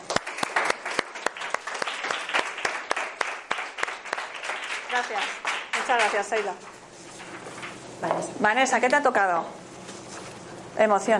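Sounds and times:
audience applause: 0.0s - 6.4s
speech: 5.0s - 6.7s, 8.0s - 9.6s, 10.8s - 11.1s.

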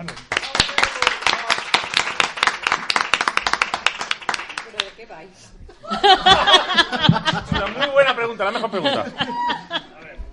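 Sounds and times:
audience applause: 0.0s - 5.0s, 6.5s - 8.0s
laughter: 5.8s - 10.2s
speech: 8.4s - 9.6s.

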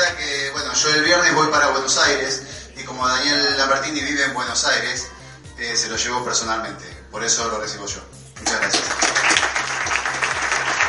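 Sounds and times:
low rhythmic hum: 0.0s - 10.8s
speech: 0.8s - 9.2s
audience applause: 8.5s - 10.8s.

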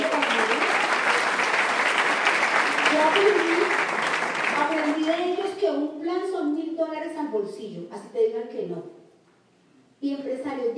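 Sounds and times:
audience applause: 0.0s - 5.4s
speech: 3.1s - 3.8s, 5.1s - 9.0s, 10.0s - 10.7s.

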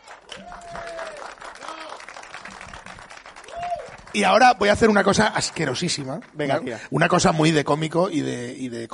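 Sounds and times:
people cheering: 0.0s - 5.7s
audience applauding: 0.0s - 6.8s
speech: 4.1s - 8.9s.

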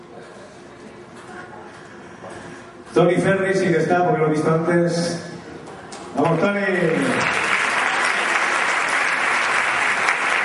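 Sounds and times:
low murmur of voices: 0.0s - 3.0s, 5.3s - 6.2s
speech: 2.9s - 5.2s, 6.2s - 7.3s
family applauding: 6.2s - 10.4s.

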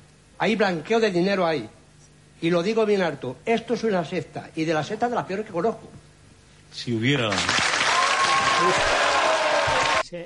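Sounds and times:
speech: 0.4s - 1.8s, 2.4s - 6.0s, 6.7s - 7.6s, 8.6s - 9.0s
audience applause: 7.3s - 10.0s.

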